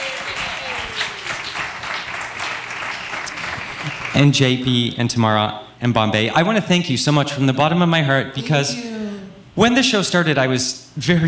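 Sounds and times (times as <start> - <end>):
audience applause for winners: 0.0 - 4.3
speech: 4.2 - 9.0, 9.6 - 11.2.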